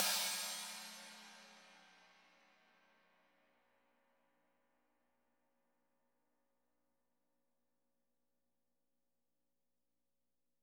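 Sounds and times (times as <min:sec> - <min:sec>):
cymbal: 0:00.0 - 0:02.9.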